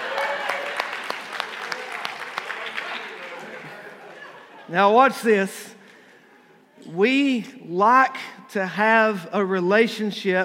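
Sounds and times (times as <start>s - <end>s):
audience applause: 0.0s - 4.4s
speech: 4.7s - 5.7s, 6.9s - 10.4s.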